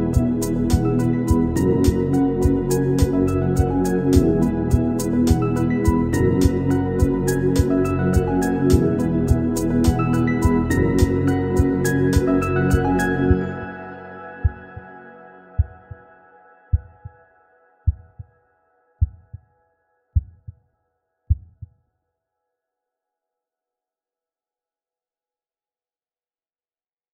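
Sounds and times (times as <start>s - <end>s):
romantic music: 0.0s - 17.8s.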